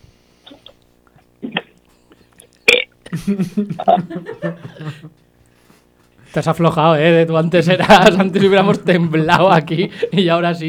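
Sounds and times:
deliberate drawn-out belch: 1.4s - 1.8s, 2.6s - 3.2s
faint chuckling: 1.4s - 5.2s
speech: 3.1s - 5.3s, 6.3s - 10.6s.

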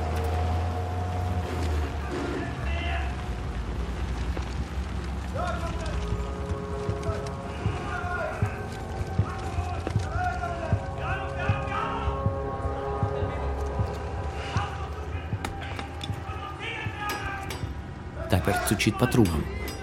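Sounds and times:
truck engine rumbling: 0.0s - 19.8s
voices: 5.2s - 19.8s
speech: 18.5s - 19.6s.

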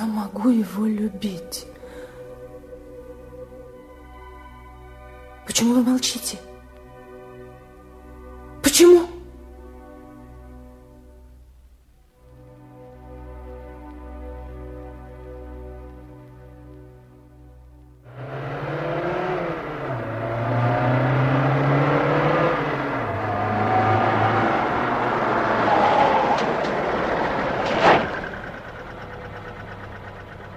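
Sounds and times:
speech: 0.2s - 1.8s, 5.6s - 6.5s
car engine idling and revving: 18.1s - 30.5s.

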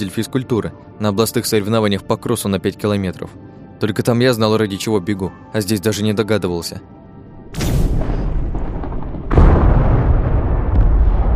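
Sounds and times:
speech: 0.0s - 7.6s
loud sustained low rumble: 7.4s - 11.3s
heavy explosions: 7.5s - 11.3s.

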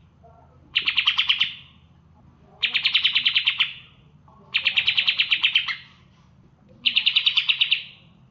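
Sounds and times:
bird singing fast rattling trilled phrases: 0.7s - 1.8s, 2.6s - 5.9s, 6.8s - 8.2s.

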